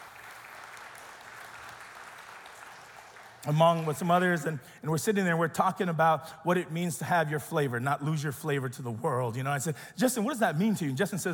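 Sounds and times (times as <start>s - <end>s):
audience applause: 0.0s - 4.1s
speech: 3.4s - 11.3s.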